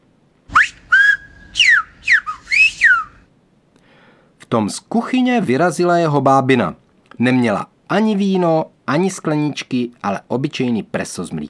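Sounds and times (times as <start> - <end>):
finger whistle in whistled language: 0.5 - 3.3
speech: 4.5 - 11.4.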